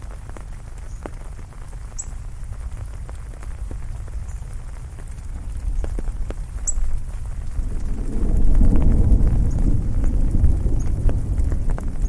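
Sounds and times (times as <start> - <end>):
heavy rain in the city: 0.0 - 12.0
thunder rumbling: 5.4 - 12.0.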